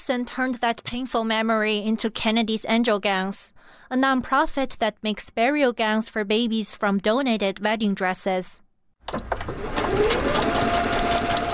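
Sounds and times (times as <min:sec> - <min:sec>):
speech: 0:00.0 - 0:10.9
sewing machine running in a home sewing workspace: 0:09.2 - 0:11.5.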